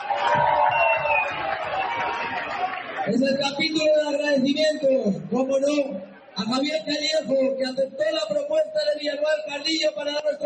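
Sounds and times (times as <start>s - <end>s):
audience applause: 0.0s - 3.4s
speech: 3.1s - 10.4s.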